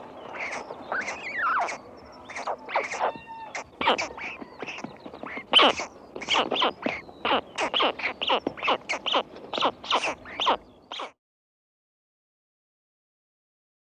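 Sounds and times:
stork: 0:00.0 - 0:11.2.

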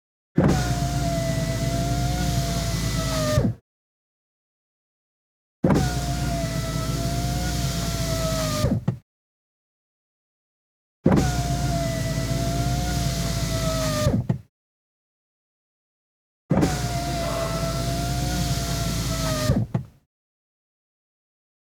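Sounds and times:
window lifter motor: 0:00.5 - 0:03.5, 0:05.8 - 0:09.0, 0:11.1 - 0:14.4, 0:16.5 - 0:19.9.

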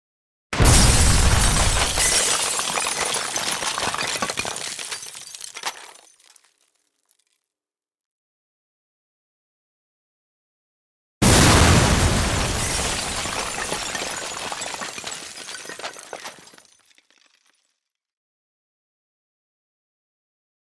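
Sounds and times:
building demolition explosion: 0:00.6 - 0:04.4, 0:11.2 - 0:16.2.

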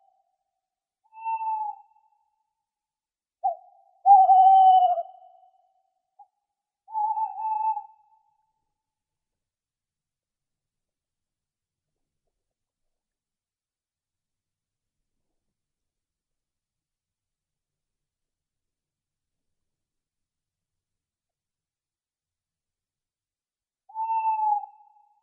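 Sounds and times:
tawny owl calling: 0:01.1 - 0:02.0, 0:03.4 - 0:05.4, 0:06.9 - 0:08.0, 0:23.9 - 0:25.0.

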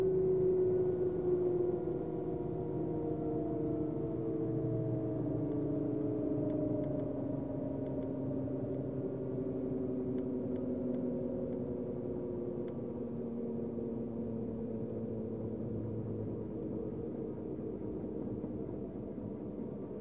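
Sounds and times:
noise inside a helicopter: 0:00.0 - 0:20.0.

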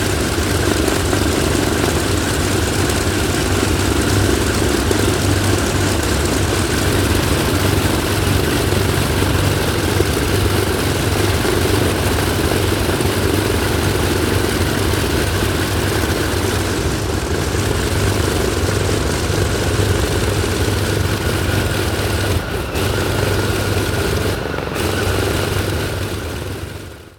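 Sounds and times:
airplane: 0:00.0 - 0:27.1.

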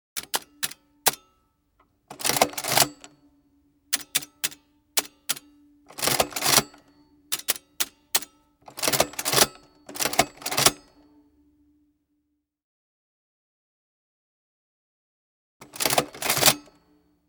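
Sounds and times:
typewriter: 0:00.2 - 0:01.2, 0:02.1 - 0:03.1, 0:04.0 - 0:10.8, 0:15.6 - 0:16.8.

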